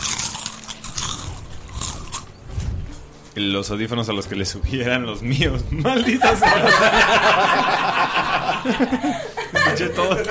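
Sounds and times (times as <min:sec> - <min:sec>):
people biting into potato chips: 0:00.0 - 0:02.3
speech: 0:03.4 - 0:08.0, 0:08.6 - 0:09.2, 0:09.8 - 0:10.2
laughter: 0:05.7 - 0:10.2.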